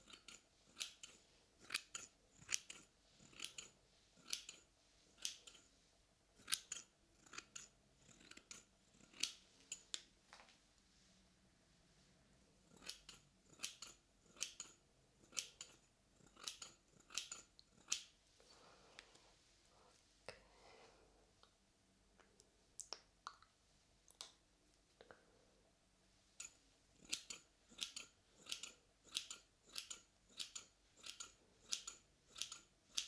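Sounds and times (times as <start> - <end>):
scissors snipping: 0.0 - 4.6, 5.2 - 5.7, 6.4 - 9.9, 12.7 - 18.1, 26.4 - 33.0.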